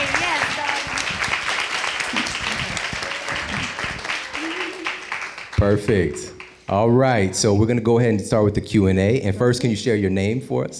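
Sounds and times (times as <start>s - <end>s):
audience clapping: 0.0s - 6.7s
speech: 5.6s - 10.7s.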